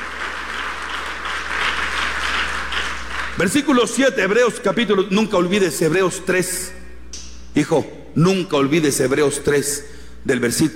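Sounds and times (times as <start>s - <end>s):
audience applause: 0.0s - 3.4s
speech: 3.4s - 6.8s, 7.6s - 10.7s.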